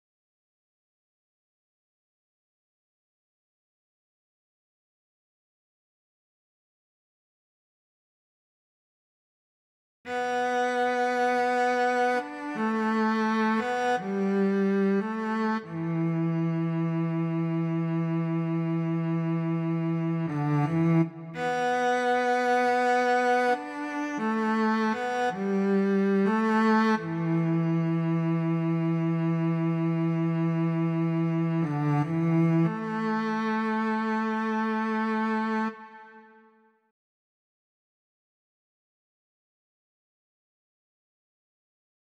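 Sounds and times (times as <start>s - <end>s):
cello: 10.1s - 36.6s.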